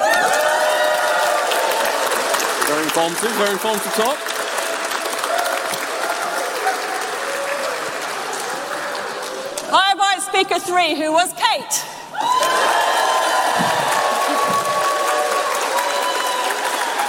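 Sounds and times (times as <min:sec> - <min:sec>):
audience applause and cheering for speaker: 0:00.0 - 0:09.7, 0:12.1 - 0:17.0
speech: 0:02.9 - 0:04.4, 0:09.7 - 0:12.0.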